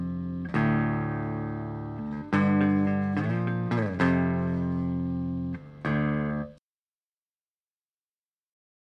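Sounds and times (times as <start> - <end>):
Ibanez RGD71AL electric guitar clean neck pickup: 0.0 - 6.6.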